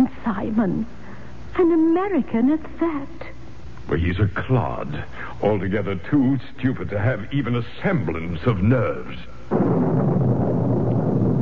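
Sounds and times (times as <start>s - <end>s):
speech: 0.5s - 1.0s, 1.6s - 3.3s, 3.9s - 10.3s
thunder: 9.5s - 11.4s.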